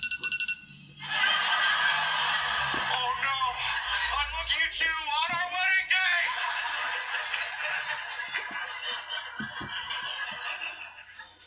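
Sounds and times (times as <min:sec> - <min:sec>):
phone alarm going off: 0:00.0 - 0:00.9
laughter: 0:01.0 - 0:11.4
speech: 0:04.7 - 0:05.1.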